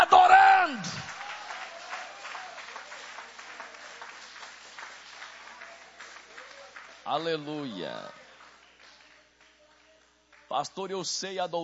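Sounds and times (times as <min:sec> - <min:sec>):
audience applauding: 0:00.8 - 0:09.6
speech: 0:07.1 - 0:08.2, 0:10.5 - 0:11.6.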